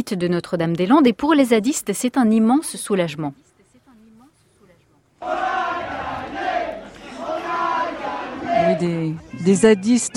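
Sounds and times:
speech: 0.0s - 3.5s, 8.7s - 10.1s
crowd applauding: 5.2s - 8.9s
crowd cheering: 5.2s - 9.8s.

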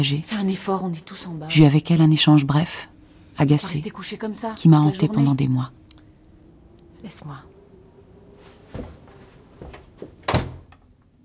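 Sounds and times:
speech: 0.0s - 5.8s, 7.0s - 7.5s, 8.7s - 9.0s
door shut sharply: 8.6s - 10.9s.

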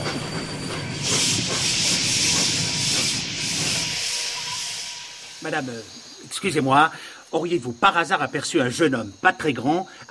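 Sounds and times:
train grinding to a sudden emergency stop: 0.0s - 7.1s
train steam hissing: 0.0s - 7.7s
speech: 5.5s - 10.0s.

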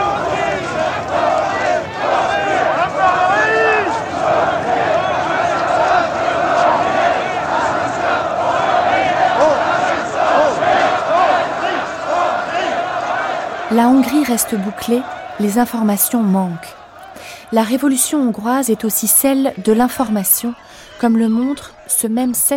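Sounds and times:
individual shouts and chant-like cries: 0.0s - 22.4s
crowd of street demonstrators roaring: 0.0s - 22.5s
speech: 14.0s - 16.8s, 17.5s - 22.5s.

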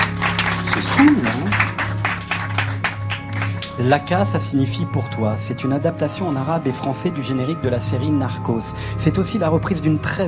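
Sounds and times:
audience applause: 0.0s - 3.8s
speech: 0.8s - 1.6s, 3.8s - 10.2s.

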